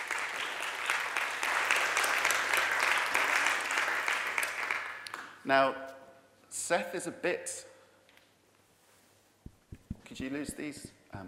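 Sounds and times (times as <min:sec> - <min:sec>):
audience applause: 0:00.0 - 0:05.2
speech: 0:05.5 - 0:05.9, 0:06.5 - 0:07.7, 0:10.2 - 0:11.2.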